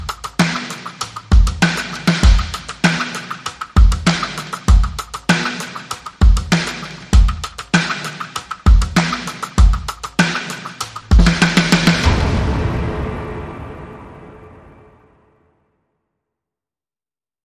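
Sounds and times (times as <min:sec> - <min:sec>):
drums: 0:00.0 - 0:15.1
sound effects: 0:11.2 - 0:15.7.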